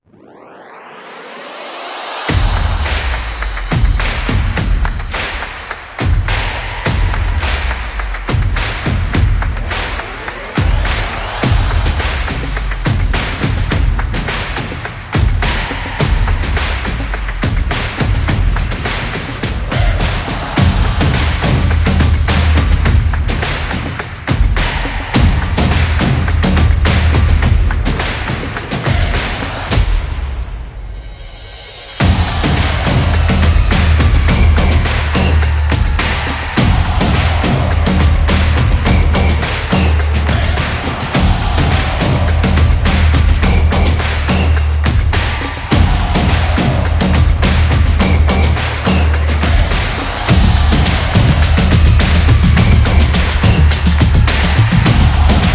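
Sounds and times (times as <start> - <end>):
sport and action music: 0.0 - 55.5.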